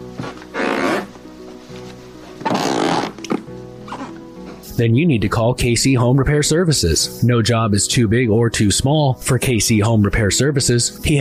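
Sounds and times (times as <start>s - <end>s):
squeaky floorboards creaking: 0.1s - 4.6s
speech: 4.8s - 11.1s.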